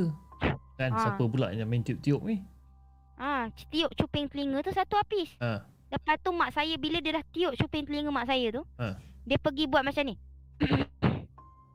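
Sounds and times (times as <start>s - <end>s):
speech: 0.0s - 0.2s, 0.8s - 2.5s, 3.2s - 10.9s
imitated throat clearing: 10.6s - 11.4s.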